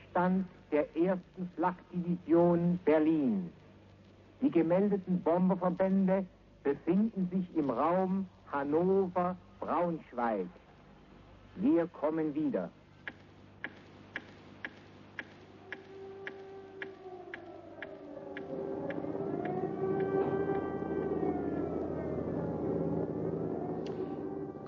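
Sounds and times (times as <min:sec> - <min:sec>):
speech: 0:00.2 - 0:03.6, 0:04.4 - 0:10.6, 0:11.6 - 0:12.8
air-raid siren on Radio Berlino: 0:15.5 - 0:24.6.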